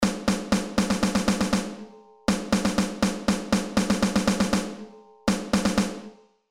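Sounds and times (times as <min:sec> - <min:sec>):
snare drum rhythms: 0:00.0 - 0:06.2.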